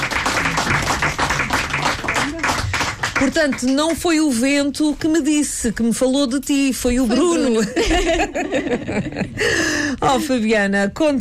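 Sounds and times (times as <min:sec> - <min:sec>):
studio audience clapping: 0:00.0 - 0:04.4
speech: 0:03.2 - 0:11.1
laughter: 0:07.1 - 0:10.4.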